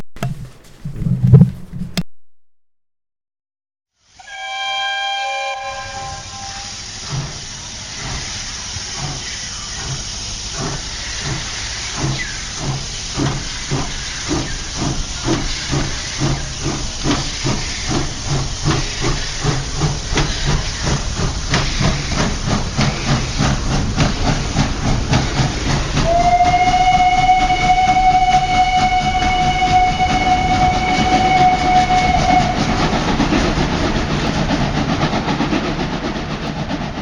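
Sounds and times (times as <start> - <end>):
steam train starting to move, hissing steam and chuffing: 4.0 - 37.0.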